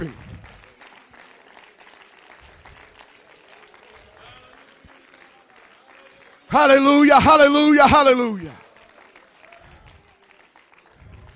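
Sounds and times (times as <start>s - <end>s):
audience hand clapping: 0.0s - 11.3s
speech: 6.5s - 8.6s.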